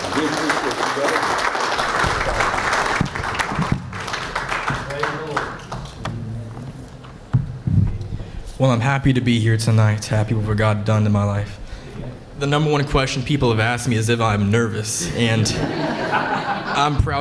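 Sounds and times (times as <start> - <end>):
audience applause: 0.0 - 6.0
thumps: 7.2 - 8.4
speech: 8.6 - 11.6, 12.4 - 17.1
laughter: 15.0 - 17.1.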